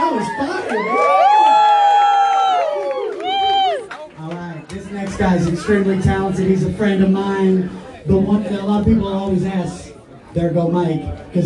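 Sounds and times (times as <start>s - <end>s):
audience cheering and making noise: 0.0s - 5.3s
speech: 0.1s - 0.5s, 5.2s - 11.4s.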